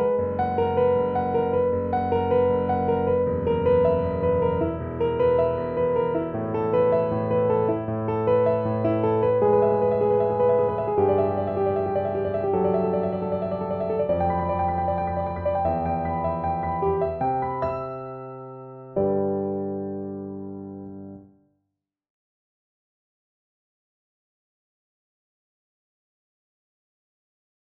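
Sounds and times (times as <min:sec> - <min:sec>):
piano: 0:00.0 - 0:21.4.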